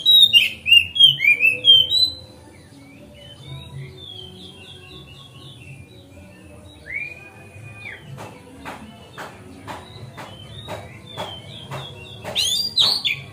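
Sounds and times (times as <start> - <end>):
Oriental magpie-robin song of whistles and chatter: 0.0 - 13.3
sharp rhythmic clicks: 8.0 - 13.3.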